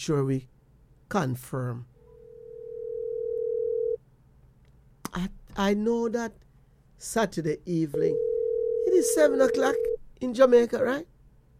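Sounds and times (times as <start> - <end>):
speech: 0.0 - 1.9, 5.2 - 6.4, 7.0 - 8.3, 9.0 - 11.1
telephone dial tone while placing call: 2.2 - 4.0, 8.0 - 10.0.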